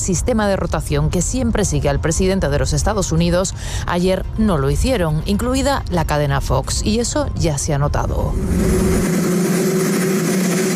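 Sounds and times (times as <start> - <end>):
speech: 0.0 - 9.5
helicopter noise: 8.3 - 10.7.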